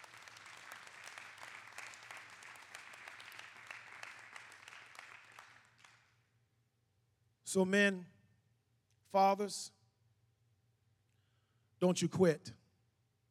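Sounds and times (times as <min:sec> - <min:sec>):
crowd applauding in praise: 0:00.0 - 0:06.1
speech: 0:07.5 - 0:08.1, 0:09.1 - 0:09.8, 0:11.8 - 0:12.6.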